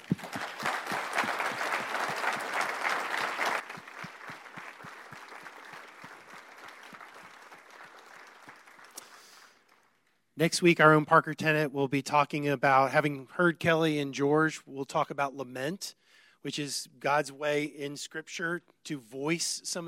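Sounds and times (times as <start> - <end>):
audience applause: 0.0 - 10.0
speech: 10.4 - 19.8.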